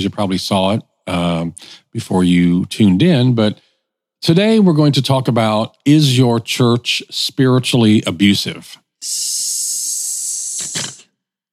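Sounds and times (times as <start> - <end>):
speech: 0.0 - 3.6, 4.2 - 9.6
hissing sound effect: 9.0 - 11.0.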